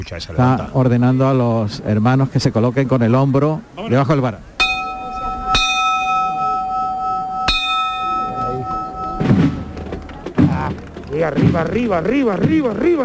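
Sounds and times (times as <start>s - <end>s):
speech: 0.0s - 4.5s, 11.2s - 13.0s
silver procession bell ringing: 4.6s - 11.1s.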